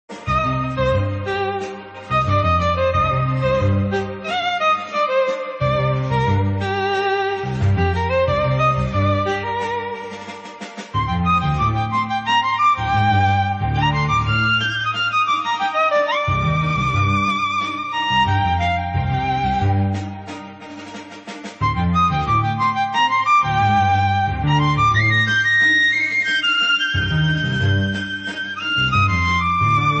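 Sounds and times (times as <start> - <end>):
violin: 0.0 - 29.9.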